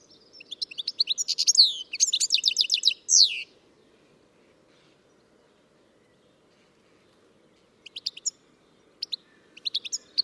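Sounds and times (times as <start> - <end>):
bird chirping and twittering: 0.0 - 3.6, 7.5 - 10.2.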